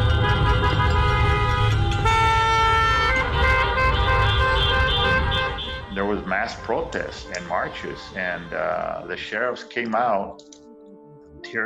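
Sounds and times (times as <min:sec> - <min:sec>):
low rumble of idling traffic: 0:00.0 - 0:09.1
car horns honking in protest caravan: 0:00.0 - 0:09.5
speech: 0:06.4 - 0:10.6, 0:11.4 - 0:11.6.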